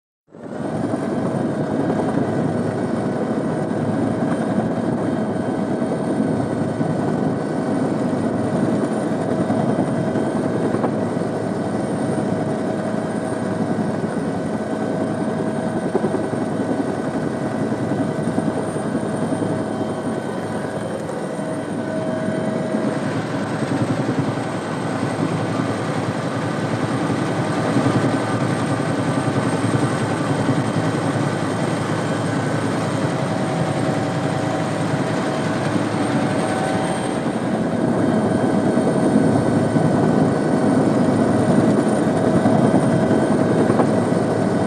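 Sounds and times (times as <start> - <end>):
UH-1 Iroquois helicopter hovering, heard from inside: 0.3 - 44.6.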